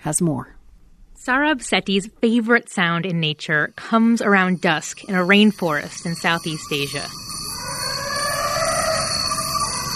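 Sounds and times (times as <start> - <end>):
speech: 0.0 - 0.6, 1.2 - 7.3
forest elephant trumpeting: 6.4 - 9.9.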